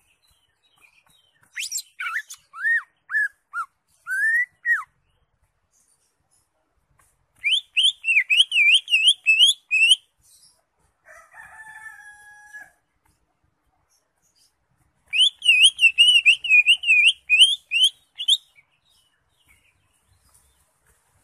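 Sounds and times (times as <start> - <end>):
Greater Green Leafbird whistled song: 0.0 - 6.0, 7.4 - 10.6, 15.1 - 20.6.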